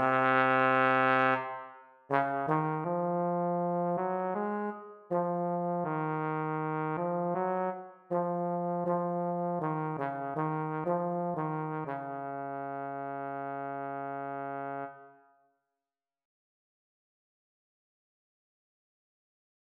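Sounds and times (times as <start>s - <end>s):
bass trombone and euphonium solo in live performance: 0.0s - 15.1s.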